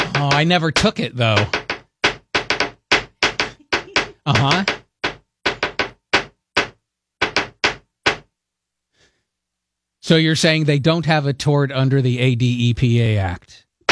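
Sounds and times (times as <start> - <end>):
knocking bangs as Morse code answer: 0.0 - 8.3
speech: 0.2 - 1.6, 4.3 - 4.8, 10.1 - 13.6.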